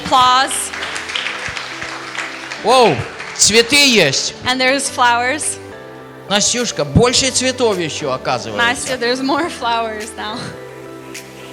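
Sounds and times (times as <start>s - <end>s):
audience applause: 0.0s - 4.1s
speech: 0.1s - 0.8s, 2.6s - 5.6s, 6.3s - 10.6s.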